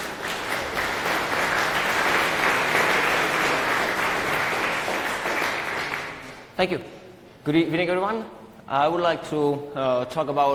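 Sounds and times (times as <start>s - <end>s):
audience applause: 0.0s - 6.5s
speech: 6.6s - 10.5s.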